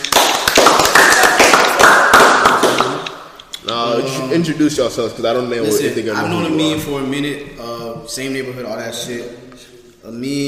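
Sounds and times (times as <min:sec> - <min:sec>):
people clapping for guests: 0:00.0 - 0:03.4
speech: 0:04.0 - 0:10.4.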